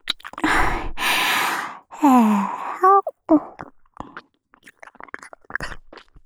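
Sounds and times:
ASMR ear licking in the left ear: 0:00.4 - 0:03.6.

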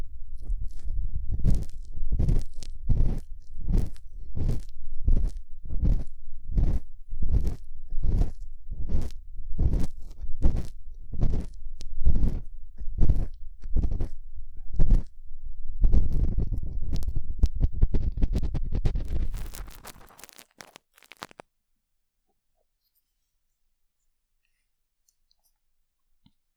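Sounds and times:
ear cleaning sounds: 0:00.4 - 0:15.2, 0:15.8 - 0:21.4.

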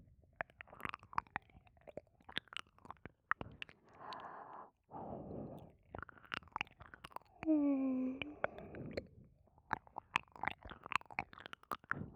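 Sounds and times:
ear licking: 0:00.4 - 0:04.3, 0:05.6 - 0:07.5, 0:08.2 - 0:12.0
lotion on both ears: 0:00.4 - 0:04.4, 0:05.5 - 0:07.5, 0:08.2 - 0:12.0.

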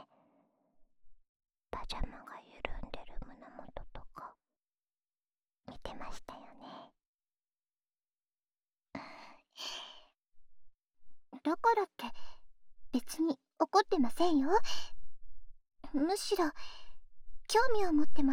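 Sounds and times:
woman whispering ASMR: 0:01.8 - 0:04.4, 0:05.7 - 0:06.9, 0:11.4 - 0:12.4, 0:13.0 - 0:15.0, 0:15.8 - 0:18.3.

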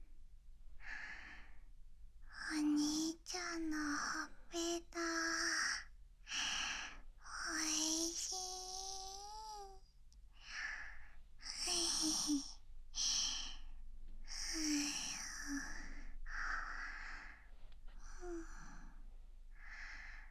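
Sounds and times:
sleep talking: 0:02.4 - 0:05.8, 0:07.3 - 0:09.8, 0:10.5 - 0:13.6, 0:14.3 - 0:17.4
sleeping breath: 0:10.4 - 0:20.2.

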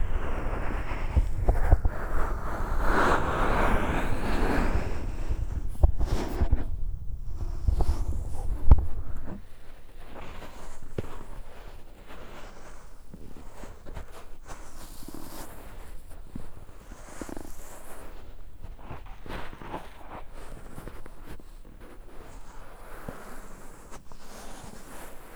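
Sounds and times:
massage: 0:00.0 - 0:09.4.

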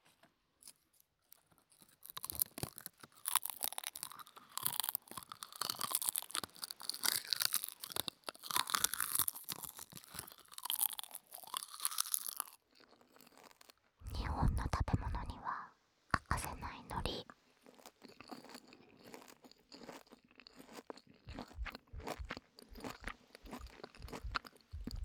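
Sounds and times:
chewing and crunching a large piece of low-calorie food: 0:00.1 - 0:15.4, 0:16.2 - 0:25.0
person whispering: 0:14.0 - 0:17.3.

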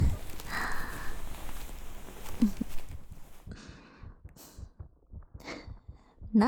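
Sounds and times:
soft rustling: 0:00.0 - 0:03.5
rapid pounding heartbeat: 0:00.0 - 0:06.4.

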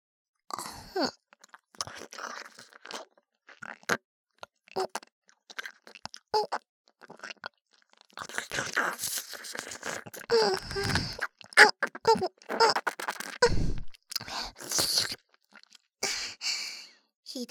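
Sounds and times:
wet ASMR mouth sounds acting out eating the listener's ear: 0:01.0 - 0:16.2.

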